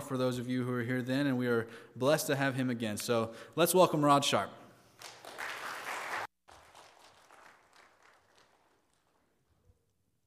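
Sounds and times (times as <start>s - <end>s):
speech: 0.1s - 5.1s
audience applause: 5.0s - 9.4s.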